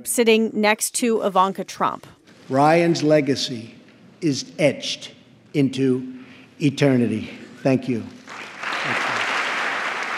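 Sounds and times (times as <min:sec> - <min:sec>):
speech: 0:00.0 - 0:08.2
long applause in Congress: 0:08.2 - 0:10.1.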